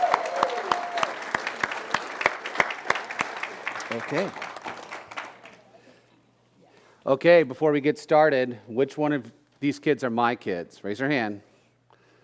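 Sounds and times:
audience applause: 0.0 - 5.7
speech: 3.9 - 4.5, 7.1 - 11.5.

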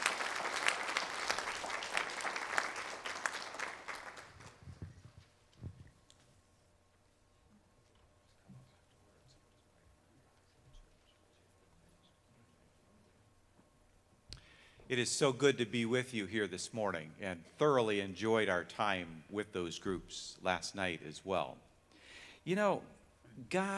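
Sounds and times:
audience round of applause: 0.0 - 5.0
speech: 14.9 - 21.7, 22.4 - 23.7.

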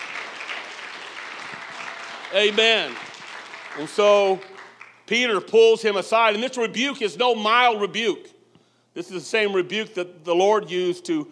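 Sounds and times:
audience clapping hands: 0.0 - 5.1
speech: 2.3 - 3.0, 3.8 - 4.5, 5.1 - 8.3, 9.0 - 11.3.

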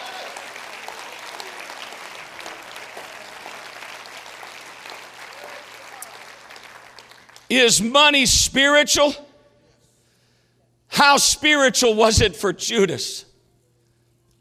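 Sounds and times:
audience clapping hands: 0.0 - 7.6
speech: 7.5 - 9.2, 11.0 - 13.3.

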